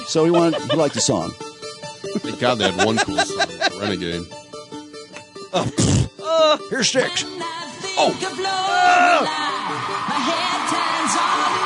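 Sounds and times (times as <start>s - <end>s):
laughter: 0.0s - 1.3s, 2.0s - 4.2s
speech: 0.1s - 1.5s, 2.1s - 4.4s, 5.5s - 11.6s
concert crowd cheering and chanting: 8.2s - 11.6s.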